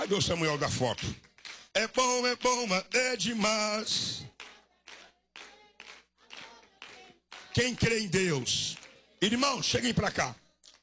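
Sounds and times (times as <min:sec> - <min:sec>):
speech: 0:00.1 - 0:04.2, 0:07.6 - 0:10.4
hand clapping: 0:00.8 - 0:01.7, 0:04.4 - 0:09.0.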